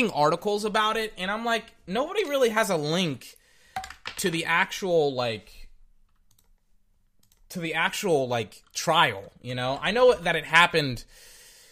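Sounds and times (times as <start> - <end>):
speech: 0.0 - 3.4, 4.2 - 5.6, 7.5 - 11.3
computer keyboard typing a Google search: 6.1 - 6.6.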